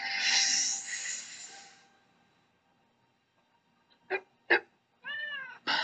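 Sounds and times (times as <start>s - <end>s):
hissy noise: 0.1s - 1.8s
cat meowing: 5.0s - 5.7s.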